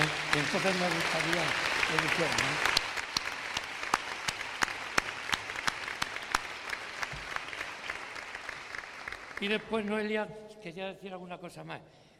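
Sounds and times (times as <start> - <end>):
audience applause for parents at a sports gathering: 0.0 - 10.0
speech: 0.4 - 2.8, 9.4 - 12.0.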